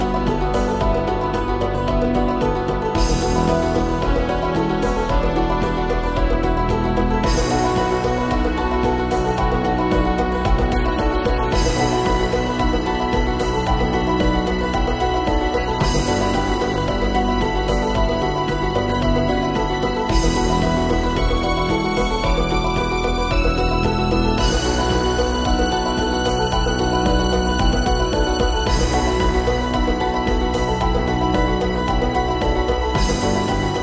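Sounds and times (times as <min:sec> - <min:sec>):
virtual instrument harp: 0:00.0 - 0:33.8
virtual instrument mandolin: 0:00.0 - 0:33.8
virtual instrument piano: 0:00.0 - 0:33.8
virtual instrument strings: 0:00.0 - 0:33.8.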